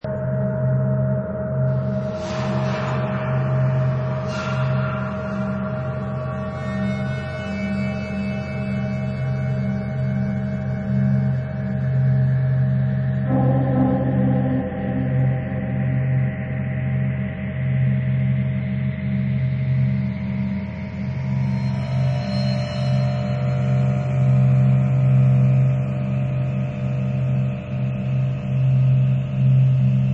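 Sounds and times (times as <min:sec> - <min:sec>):
horror sci-fi soundscape: 0:00.0 - 0:30.1.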